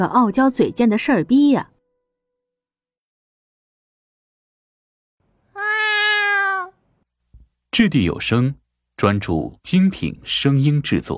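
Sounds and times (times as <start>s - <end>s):
speech: 0.0s - 1.7s, 7.8s - 11.1s
cat meowing: 5.5s - 6.8s.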